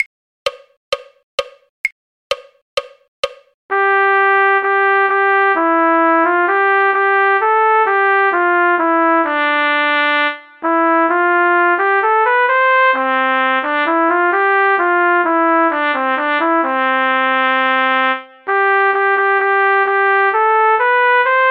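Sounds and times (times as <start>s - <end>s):
trumpet: 3.7s - 21.4s.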